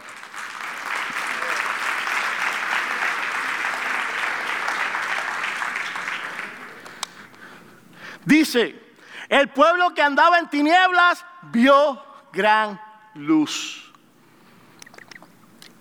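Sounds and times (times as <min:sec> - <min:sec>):
audience applause: 0:00.0 - 0:07.0
speech: 0:08.2 - 0:13.9.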